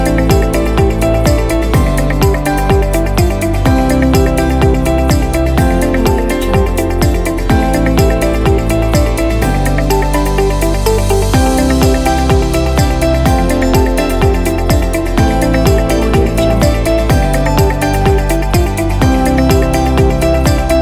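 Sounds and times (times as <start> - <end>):
inspirational corporate music: 0.0 - 20.8.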